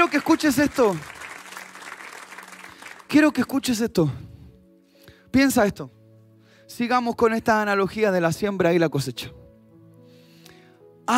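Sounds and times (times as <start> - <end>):
speech: 0.0 - 1.2, 3.1 - 4.3, 5.3 - 6.0, 6.7 - 9.4
audience applause: 0.0 - 3.4.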